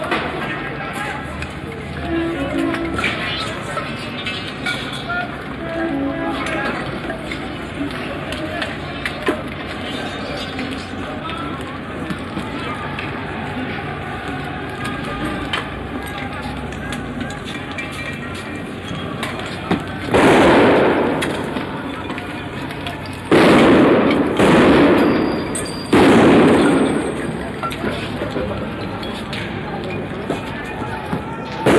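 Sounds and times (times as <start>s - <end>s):
riot background noise in Paris: 0.0s - 31.7s
smoke grenades going off: 20.1s - 21.6s, 23.2s - 27.4s.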